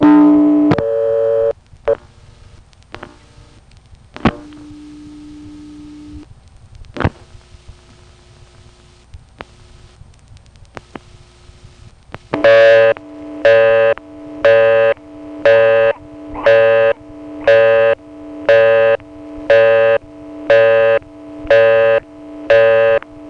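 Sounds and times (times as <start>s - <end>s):
local busy signal from dialing a payphone's own number: 0.0s - 1.6s, 12.4s - 23.0s
low hum: 0.0s - 23.2s.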